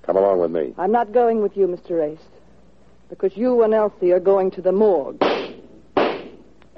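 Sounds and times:
speech: 0.2s - 2.4s, 3.1s - 5.4s
gunshots: 5.2s - 6.5s.

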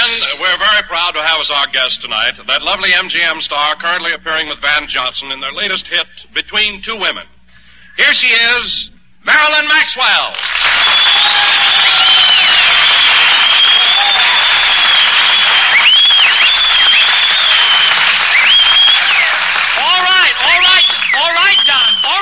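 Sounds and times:
speech: 1.1s - 7.4s, 8.0s - 12.6s
studio audience applause greeting a guest star: 10.3s - 22.1s
bright whistles: 10.5s - 19.6s, 20.5s - 22.1s.

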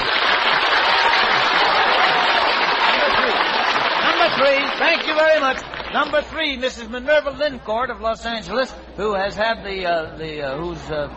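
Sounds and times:
audience applause: 0.0s - 6.2s
speech: 4.4s - 11.1s.

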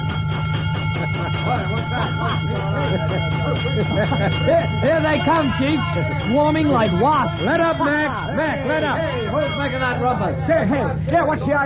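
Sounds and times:
fire engine bell clanging: 0.0s - 11.6s
laughter: 0.6s - 11.6s
speech: 3.8s - 11.6s
voices calling out: 4.6s - 11.6s.

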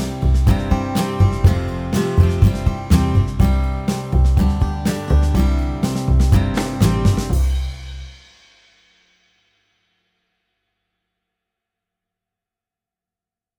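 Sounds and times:
ukulele: 0.0s - 7.6s.

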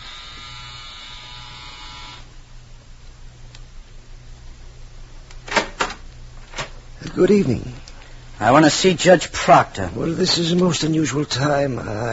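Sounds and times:
doorbell buzzer ringing: 0.0s - 2.3s
speech: 7.2s - 7.8s, 8.4s - 12.1s.

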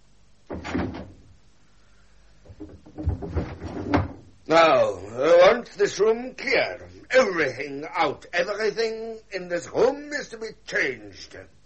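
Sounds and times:
windows being opened: 2.5s - 4.3s
speech: 4.5s - 5.0s, 5.6s - 11.6s.

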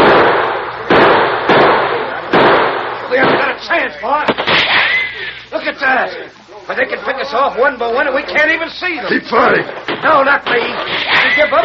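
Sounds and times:
gunshots in a western radio drama shootout: 0.0s - 5.2s, 9.7s - 11.6s
speech: 3.8s - 4.7s, 5.6s - 11.6s.

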